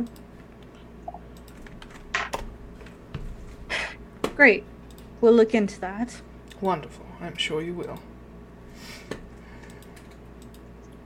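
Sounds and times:
speech: 0:00.0 - 0:00.2, 0:04.4 - 0:08.1
keyboard typing: 0:01.1 - 0:02.5, 0:09.6 - 0:11.0.

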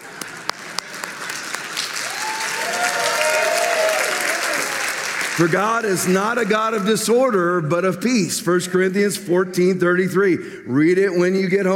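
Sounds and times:
audience applause: 0:00.0 - 0:06.8
speech: 0:05.4 - 0:11.7.

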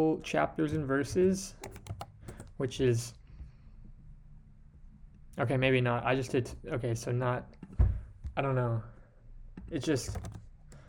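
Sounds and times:
speech: 0:00.0 - 0:01.8, 0:02.6 - 0:03.2, 0:05.4 - 0:07.8, 0:08.4 - 0:08.9, 0:09.7 - 0:10.4
typing on a computer keyboard: 0:01.6 - 0:02.5, 0:09.9 - 0:10.8.

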